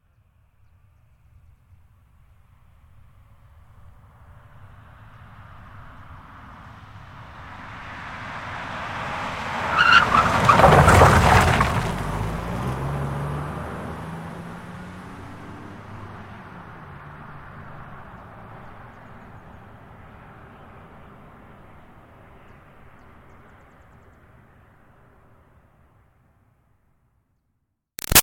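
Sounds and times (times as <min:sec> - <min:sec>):
Highlander car driving fast around a corner on dirt: 0:07.3 - 0:18.2.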